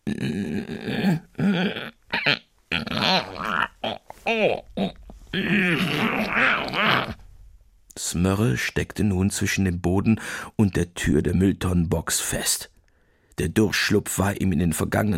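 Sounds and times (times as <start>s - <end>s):
voice imitating a scraping, dragging sound: 0.0s - 7.2s
speech: 0.1s - 1.7s, 8.2s - 12.7s, 13.4s - 15.1s.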